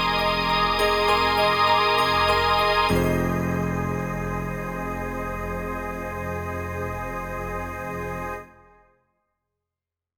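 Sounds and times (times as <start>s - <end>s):
wave stack piano: 0.0s - 8.7s.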